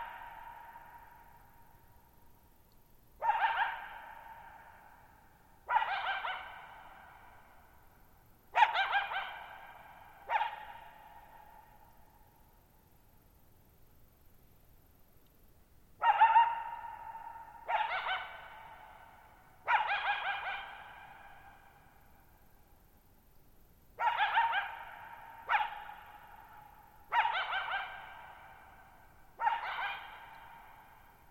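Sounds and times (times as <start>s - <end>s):
coyote barking: 3.2s - 4.9s, 5.6s - 7.3s, 8.5s - 11.5s, 16.0s - 21.7s, 24.0s - 31.1s.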